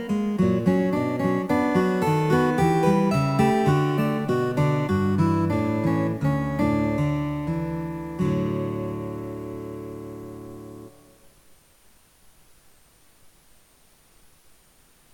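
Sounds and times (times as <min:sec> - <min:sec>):
guitar: 0:00.0 - 0:11.4.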